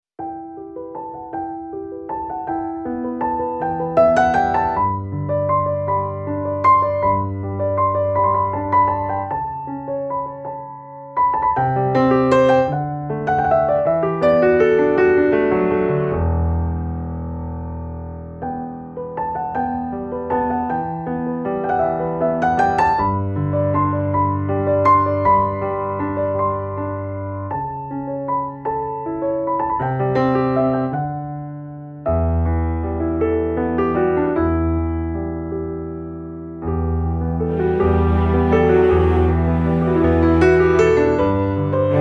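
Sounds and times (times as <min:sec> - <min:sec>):
instrumental music: 0:00.2 - 0:42.0.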